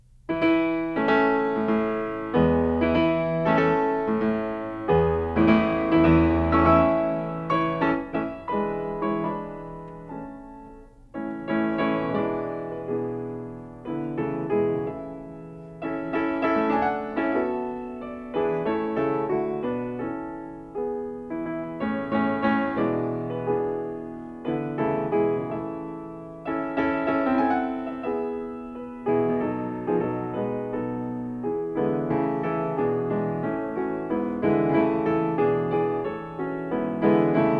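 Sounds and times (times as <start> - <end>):
piano piece in A major: 0.0 - 37.5.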